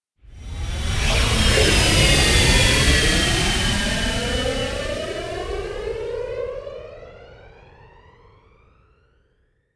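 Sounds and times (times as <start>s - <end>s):
airplane flyby: 0.5s - 6.8s.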